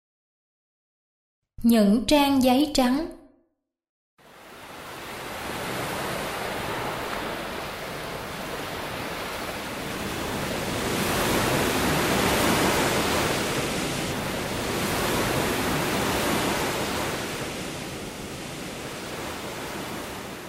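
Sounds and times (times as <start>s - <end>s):
speech: 1.6s - 3.2s
ocean waves washing onto a beach: 4.2s - 20.4s.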